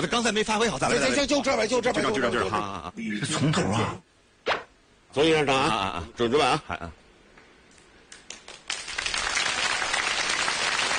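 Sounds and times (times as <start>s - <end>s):
speech: 0.0s - 4.6s, 5.2s - 7.0s
audience applause during a stage show rehearsal: 8.1s - 10.9s.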